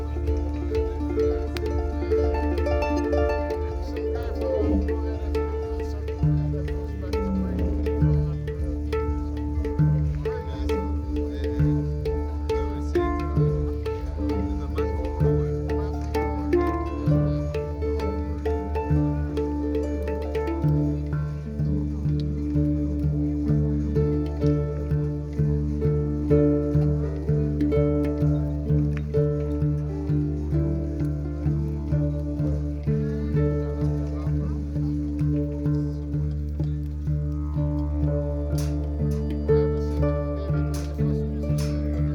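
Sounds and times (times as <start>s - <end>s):
didgeridoo deep steady drone: 0.0s - 42.1s
plucked harp notes: 0.0s - 42.1s
ringing hang drum tones: 0.0s - 42.1s.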